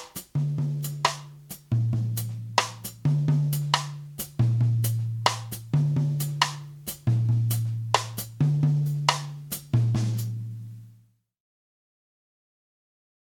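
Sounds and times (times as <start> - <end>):
drum kit playing a six-eight clave pattern: 0.0 - 11.0.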